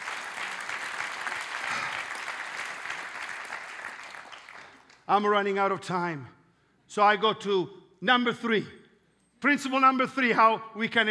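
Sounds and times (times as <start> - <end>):
audience clapping: 0.0 - 5.1
speech: 5.1 - 8.8, 9.4 - 11.0.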